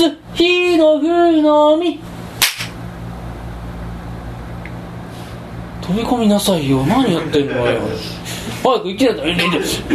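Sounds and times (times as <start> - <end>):
speech: 0.0 - 2.1, 5.9 - 9.9
low steady hum: 0.0 - 9.9
single sharp hand clap given as a signal: 2.4 - 2.8.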